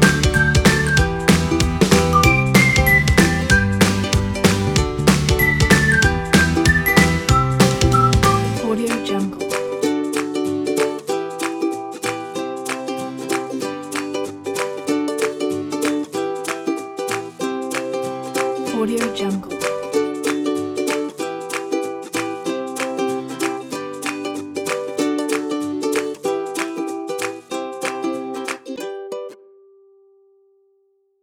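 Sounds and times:
happy whistling: 0.0 - 4.0, 5.4 - 8.6
happy ukulele: 0.0 - 30.3.

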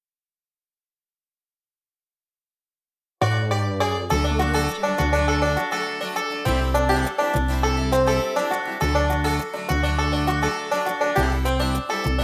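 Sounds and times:
funky bluegrass logo jingle: 3.2 - 12.2.

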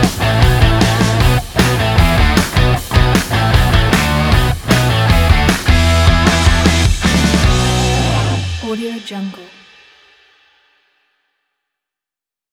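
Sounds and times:
energetic upbeat rock: 0.0 - 8.8.

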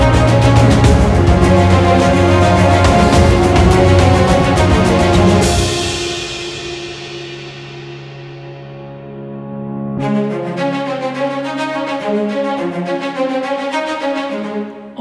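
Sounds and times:
violins: 0.0 - 6.1, 10.1 - 14.9.

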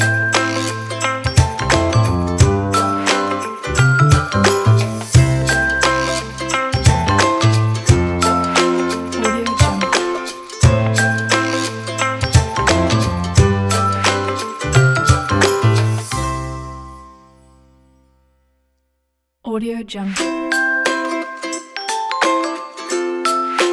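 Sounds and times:
happy ukulele guitar music: 0.0 - 17.6, 20.1 - 23.7.

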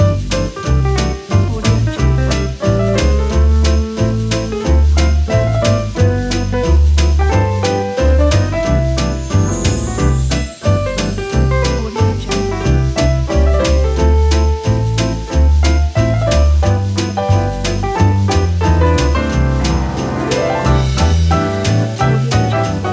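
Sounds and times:
christmas jazz music: 0.0 - 22.9.

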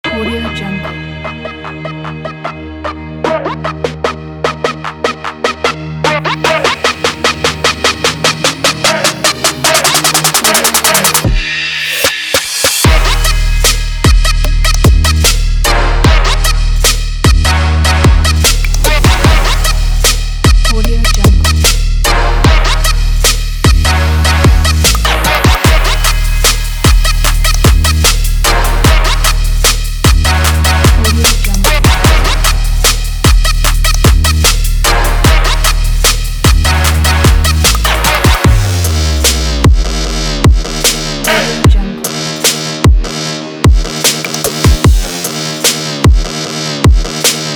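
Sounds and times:
trap beat: 1.2 - 47.5.

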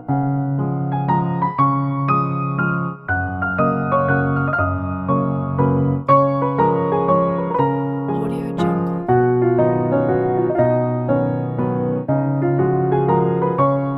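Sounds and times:
happy piano waltz: 0.0 - 13.9.

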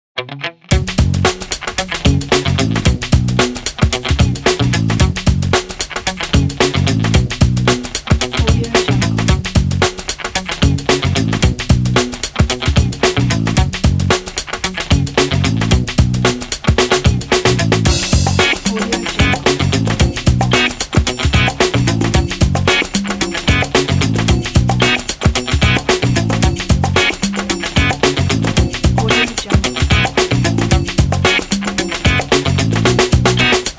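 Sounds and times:
fun funk music: 0.2 - 33.7.

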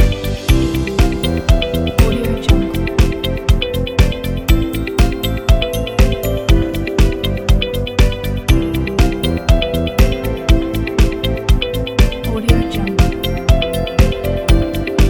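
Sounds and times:
upbeat corporate background music: 0.0 - 15.0.

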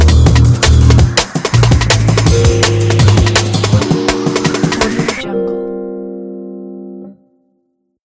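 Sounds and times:
jazzy drum and bass music: 0.0 - 5.6.

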